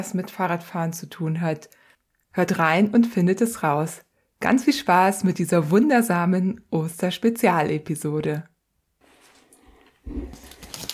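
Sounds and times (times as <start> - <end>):
speech: 0.0 - 8.5
Easter egg crackling and crunching as it is bitten and eaten: 10.2 - 10.9.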